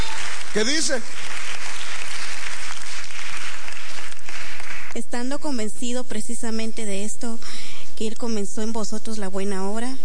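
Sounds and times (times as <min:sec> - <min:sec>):
audience clapping: 0:00.0 - 0:05.5
speech: 0:00.5 - 0:01.4, 0:05.0 - 0:10.0.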